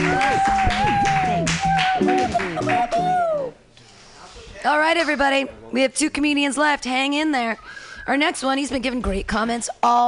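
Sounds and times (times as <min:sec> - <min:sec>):
audience applause at comedy show: 0:00.0 - 0:03.5
people whooping and cheering: 0:00.0 - 0:03.6
speech: 0:04.6 - 0:10.0.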